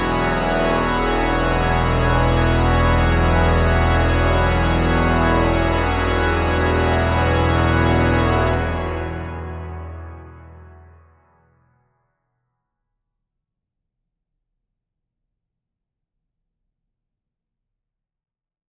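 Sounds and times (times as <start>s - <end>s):
paraphonic organ fanfare: 0.0s - 11.2s.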